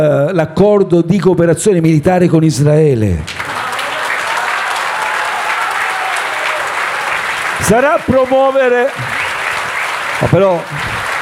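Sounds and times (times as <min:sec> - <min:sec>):
speech: 0:00.0 - 0:03.4, 0:07.7 - 0:09.2, 0:10.2 - 0:11.0
large audience applause: 0:03.3 - 0:11.2.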